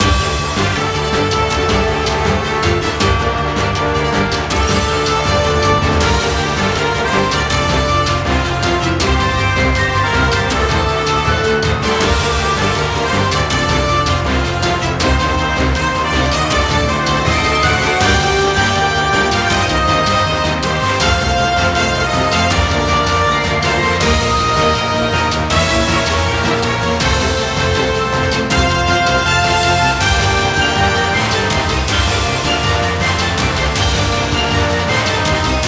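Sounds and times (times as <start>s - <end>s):
battle background music: 0.0s - 35.6s.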